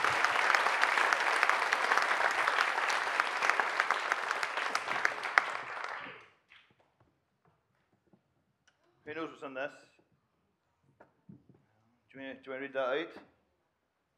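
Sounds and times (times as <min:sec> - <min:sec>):
audience round of applause: 0:00.0 - 0:06.3
speech: 0:09.4 - 0:09.9, 0:12.2 - 0:13.3.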